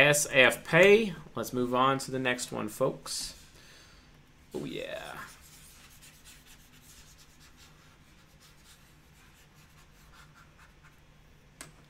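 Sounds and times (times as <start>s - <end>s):
speech: 0.0s - 3.4s, 4.5s - 5.3s
eraser rubbing out writing: 5.3s - 11.0s.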